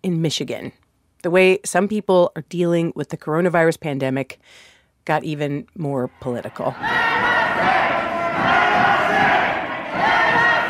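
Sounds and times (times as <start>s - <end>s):
speech: 0.0s - 7.8s
angry protesters yelling in front of the State House in Lansing: 6.6s - 10.6s.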